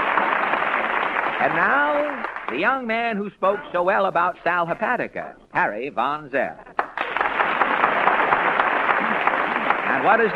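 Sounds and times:
studio audience applause: 0.0 - 2.8, 6.7 - 10.3
speech: 1.4 - 6.7, 10.0 - 10.3.

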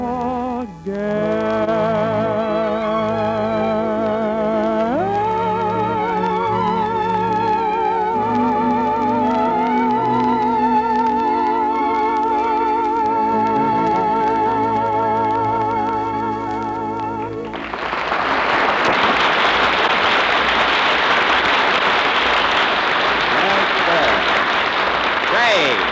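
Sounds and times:
sustained musical passage: 0.0 - 22.6
applause: 17.4 - 25.8.

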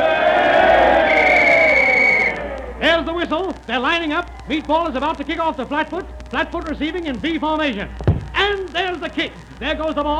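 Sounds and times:
restless crowd roar at a football game: 0.0 - 6.9
speech: 3.2 - 10.1.

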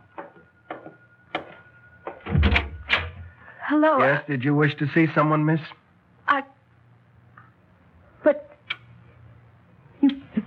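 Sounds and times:
door opening: 0.1 - 3.4
speech: 3.7 - 5.8.

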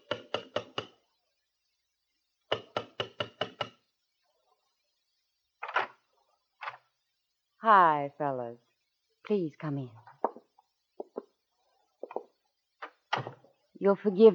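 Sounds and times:
knocking on a door: 0.0 - 0.9, 2.5 - 3.8, 10.2 - 11.3, 12.0 - 12.3
speech: 7.6 - 8.7, 9.3 - 10.0, 13.8 - 14.3.

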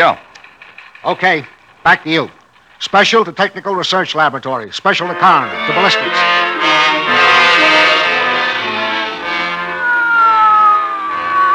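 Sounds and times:
speech: 0.0 - 0.2, 1.0 - 6.9
police squad car siren wailing: 5.0 - 11.5.

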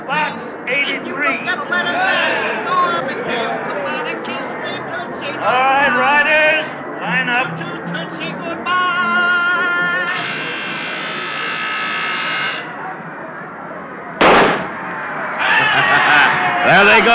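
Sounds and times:
noisy background: 0.0 - 17.1
speech: 0.4 - 3.4, 16.7 - 17.1
laughter: 1.0 - 5.4, 15.4 - 17.1
starting gun fired to begin a bicycle sprint race: 14.2 - 14.9.

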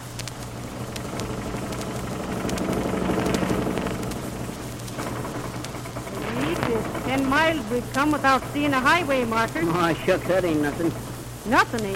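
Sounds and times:
car engine drone on a highway: 0.0 - 11.7
road noise hiss: 0.0 - 11.9
speech: 7.2 - 11.9.

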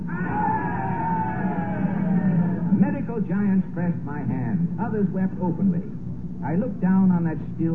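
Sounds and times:
gallery audience cheering and shouting: 0.1 - 2.7
speech: 3.3 - 7.7.

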